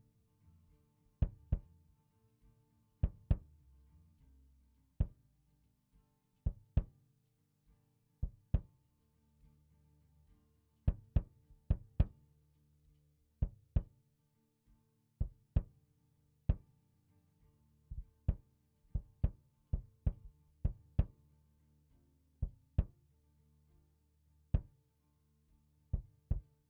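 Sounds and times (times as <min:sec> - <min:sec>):
kick drum: 0:01.2 - 0:01.8, 0:03.0 - 0:03.5, 0:05.0 - 0:05.2, 0:06.4 - 0:07.0, 0:08.2 - 0:08.8, 0:10.9 - 0:12.2, 0:13.4 - 0:14.0, 0:15.2 - 0:15.8, 0:16.5 - 0:16.8, 0:17.9 - 0:21.2, 0:22.4 - 0:23.0, 0:24.5 - 0:24.8, 0:25.9 - 0:26.6.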